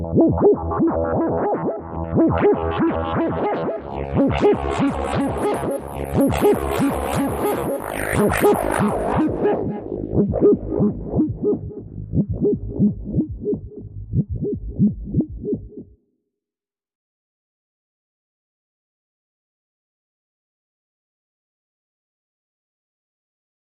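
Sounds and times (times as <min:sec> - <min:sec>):
minimal electronic music: 0:00.0 - 0:16.0.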